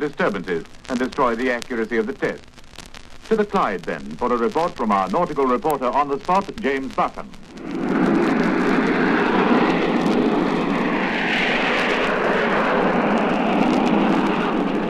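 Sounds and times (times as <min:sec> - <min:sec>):
speech: 0:00.0 - 0:02.5, 0:03.3 - 0:07.8
jet engine roar driving an old steamer on the River Clyde: 0:05.4 - 0:14.8.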